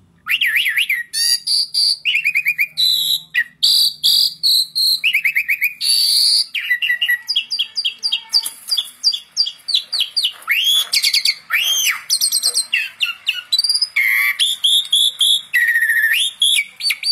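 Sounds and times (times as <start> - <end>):
Asian pied starling singing: 0.2 - 17.1.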